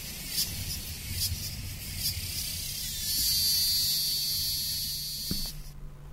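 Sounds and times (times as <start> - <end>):
cicadas singing: 0.0 - 5.8.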